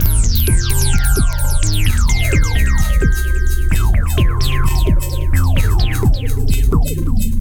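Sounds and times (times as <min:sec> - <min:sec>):
combination rhythm beat: 0:00.0 - 0:07.3.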